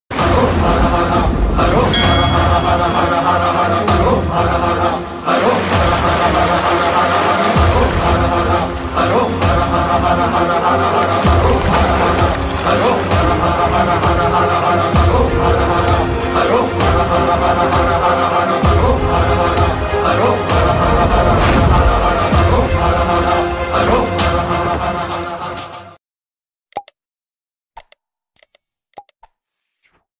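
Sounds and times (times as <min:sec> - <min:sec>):
HD climax background music ringtone: 0:00.1 - 0:25.9.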